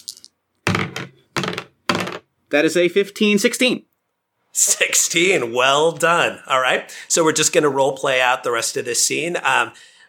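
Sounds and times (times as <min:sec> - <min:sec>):
dice being rolled: 0:00.0 - 0:02.2
speech: 0:02.5 - 0:03.9, 0:04.5 - 0:10.0.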